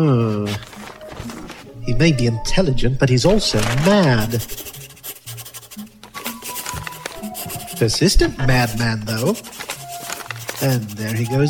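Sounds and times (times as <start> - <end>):
speech: 0.0 - 0.7, 1.9 - 4.7, 7.8 - 9.6, 10.6 - 11.4
scratchy writing strokes across a surface: 3.6 - 11.4.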